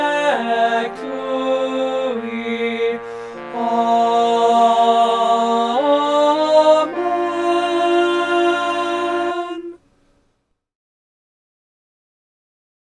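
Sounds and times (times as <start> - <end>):
instrument playing: 0.0 - 9.8.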